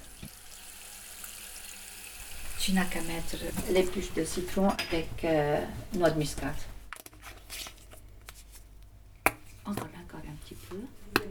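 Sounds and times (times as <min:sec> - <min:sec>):
water running into a cooking pot: 0:00.0 - 0:04.0
speech: 0:02.6 - 0:06.7.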